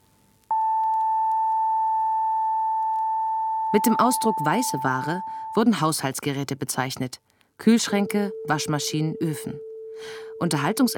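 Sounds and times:
higher test tone from right speaker: 0:00.5 - 0:05.8, 0:07.9 - 0:10.9
speech: 0:03.7 - 0:10.9.

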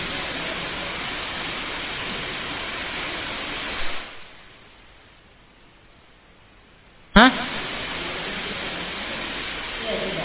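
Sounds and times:
rain: 0:00.0 - 0:10.2
speech: 0:07.2 - 0:07.5.

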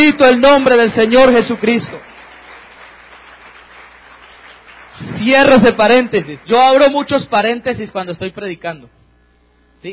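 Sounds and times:
speech: 0:00.0 - 0:02.1, 0:05.0 - 0:09.0, 0:09.8 - 0:09.9
crowd applauding during a sermon: 0:00.0 - 0:07.2.

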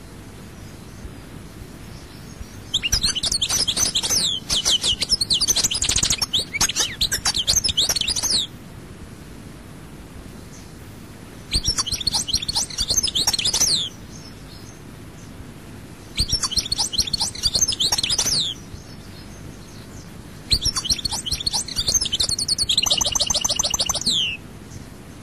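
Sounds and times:
European goldfinch singing: 0:01.9 - 0:08.5, 0:11.5 - 0:14.3, 0:16.2 - 0:19.9, 0:20.5 - 0:24.4.

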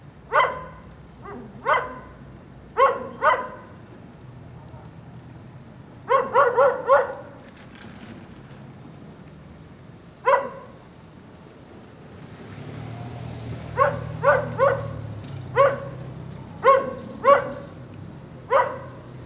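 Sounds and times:
dog barking: 0:00.3 - 0:03.8, 0:06.1 - 0:07.4, 0:10.2 - 0:10.8, 0:13.7 - 0:17.8, 0:18.5 - 0:19.1.

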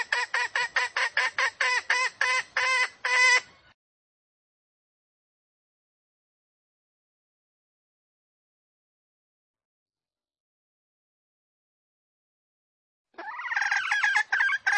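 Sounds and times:
female junglefowl squawking lure call: 0:00.0 - 0:03.5, 0:13.2 - 0:14.7.

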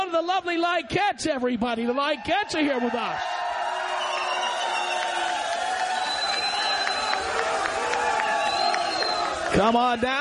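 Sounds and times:
live crowd cheering at a Cinco de Mayo radio broadcast event: 0:00.0 - 0:10.1
speech: 0:00.2 - 0:03.5, 0:09.6 - 0:10.1
faint high whistling tones: 0:04.0 - 0:07.5, 0:08.1 - 0:09.5.

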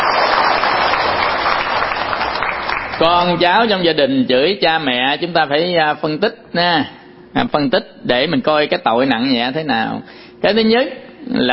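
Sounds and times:
audience applause: 0:00.0 - 0:03.2
speech: 0:03.0 - 0:11.5.

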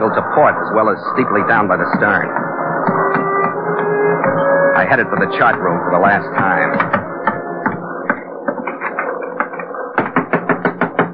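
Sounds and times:
speech: 0:00.0 - 0:02.4, 0:04.8 - 0:07.0
droning background: 0:00.0 - 0:11.1
knocking on a door: 0:01.9 - 0:03.6, 0:05.2 - 0:11.1.

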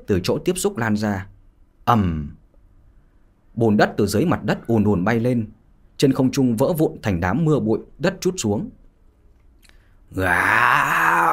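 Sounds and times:
speech: 0:00.0 - 0:01.3, 0:01.9 - 0:02.4, 0:03.6 - 0:08.8, 0:10.1 - 0:11.3
human voice roaring angrily imitating a beast: 0:10.1 - 0:11.3.

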